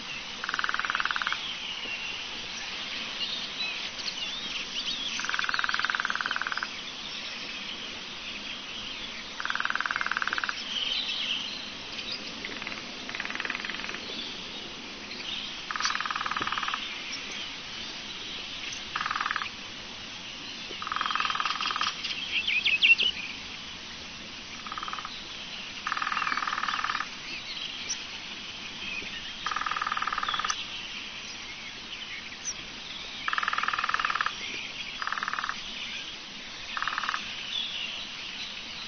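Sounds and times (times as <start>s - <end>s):
hiss: 0.0s - 38.8s
lesser spotted woodpecker pulsed calls: 0.4s - 2.2s, 3.9s - 7.7s, 8.8s - 14.5s, 15.1s - 17.4s, 18.1s - 19.6s, 20.7s - 23.3s, 24.6s - 28.1s, 28.9s - 31.5s, 32.3s - 38.0s
bird chirps: 0.4s - 14.4s, 15.1s - 17.5s, 20.7s - 23.4s, 25.8s - 28.0s, 28.8s - 36.1s.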